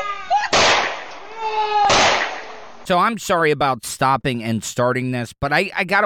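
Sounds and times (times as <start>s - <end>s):
gunshots: 0.5s - 2.8s
speech: 2.9s - 6.0s.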